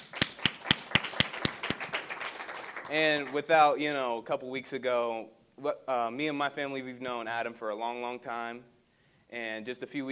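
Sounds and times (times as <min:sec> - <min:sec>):
audience round of applause: 0:00.0 - 0:02.9
speech: 0:02.9 - 0:08.7, 0:09.3 - 0:10.0.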